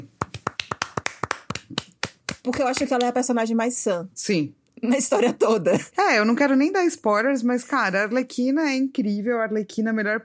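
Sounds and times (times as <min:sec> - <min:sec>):
hands clapping: 0:00.0 - 0:03.3
speech: 0:02.4 - 0:10.2.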